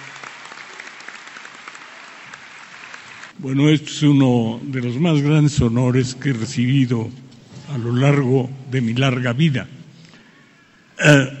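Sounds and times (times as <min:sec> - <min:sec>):
audience applause: 0:00.0 - 0:03.4
speech: 0:03.4 - 0:09.8, 0:11.0 - 0:11.3.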